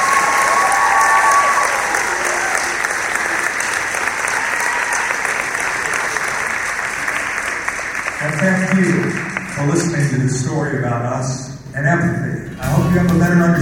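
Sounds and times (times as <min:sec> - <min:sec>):
audience applause: 0:00.0 - 0:10.4
speech: 0:10.4 - 0:12.3, 0:12.9 - 0:13.6.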